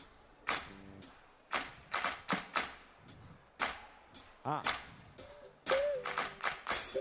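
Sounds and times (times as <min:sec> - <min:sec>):
hands clapping: 0:00.5 - 0:00.8, 0:01.5 - 0:02.8, 0:03.6 - 0:03.9, 0:04.6 - 0:04.9, 0:05.7 - 0:06.9
speech: 0:04.4 - 0:04.8.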